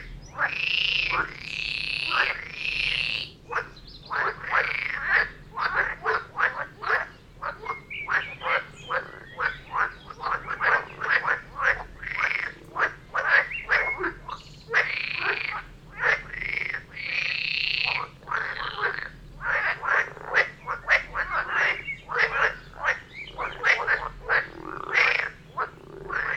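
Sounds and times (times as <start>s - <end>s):
frog chorus croaking: 0.0s - 26.3s.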